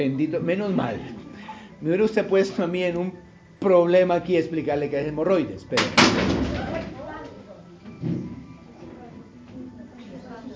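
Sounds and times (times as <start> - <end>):
speech: 0.0 - 1.2, 1.8 - 6.3
wooden chair breaking during a sermon: 5.8 - 7.0.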